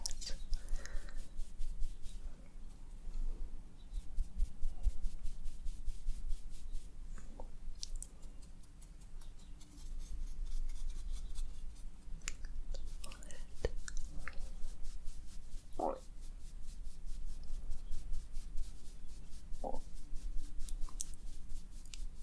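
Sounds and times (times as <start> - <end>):
makeup roleplay rubbing and brushing: 0.0 - 7.2, 7.8 - 22.2.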